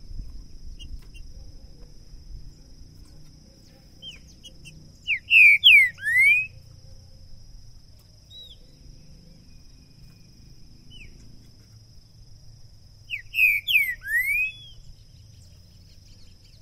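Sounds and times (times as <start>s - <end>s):
green-winged saltator song of rich downslurred whistles: 3.6s - 6.7s, 8.3s - 8.8s, 10.9s - 11.2s, 13.1s - 16.6s.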